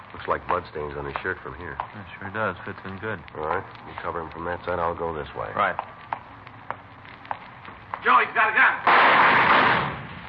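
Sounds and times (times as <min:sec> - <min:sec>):
speech: 0:00.2 - 0:06.0, 0:08.0 - 0:09.9
gunshots in a 1954 Dragnet radio drama shootout: 0:08.8 - 0:10.2.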